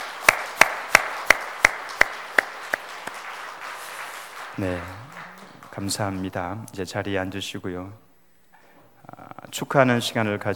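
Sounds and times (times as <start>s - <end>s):
audience applause: 0.0s - 6.6s
speech: 4.6s - 5.0s, 5.8s - 8.0s, 9.5s - 10.5s.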